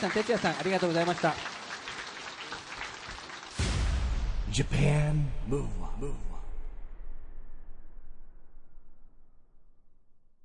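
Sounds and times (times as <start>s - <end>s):
speech: 0.0s - 1.5s, 4.6s - 6.3s
audience applause: 0.0s - 3.8s.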